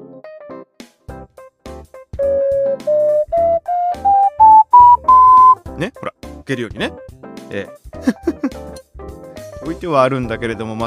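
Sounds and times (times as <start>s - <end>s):
ocarina playing: 2.2s - 5.6s
speech: 5.8s - 8.3s, 9.7s - 10.8s
laughter: 8.0s - 8.5s.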